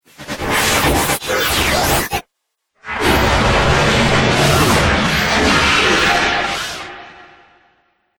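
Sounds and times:
sci-fi dubstep effects: 0:00.2 - 0:02.2, 0:02.8 - 0:07.3.

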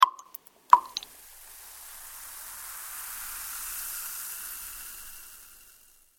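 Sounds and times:
medicine tablets dropping into a glass of water: 0:00.0 - 0:01.2
water fizzing from tablets: 0:00.0 - 0:06.1.

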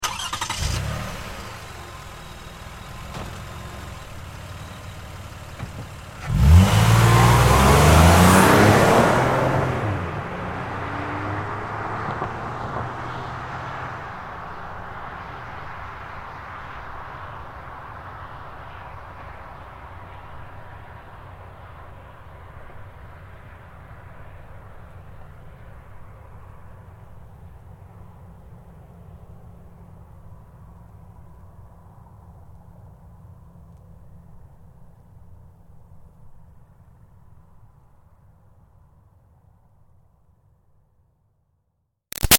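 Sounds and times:
Highlander car starting and driving away fast: 0:00.0 - 0:16.9.

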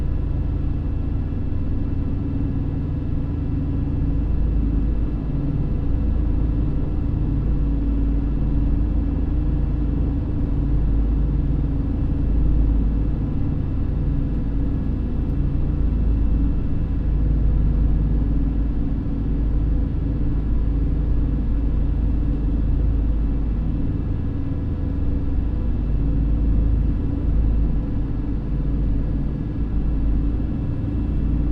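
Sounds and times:
Lockheed L-1049 Super Constellation aircraft interior on approach: 0:00.0 - 0:31.5.

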